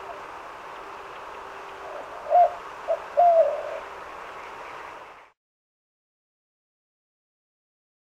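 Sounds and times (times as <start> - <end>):
White-winged dove cooing: 0.0 - 4.0.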